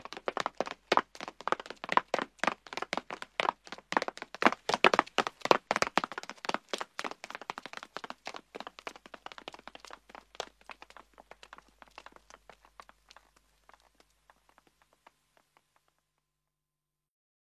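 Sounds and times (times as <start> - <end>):
footsteps of men and women approaching: 0.0 - 13.4.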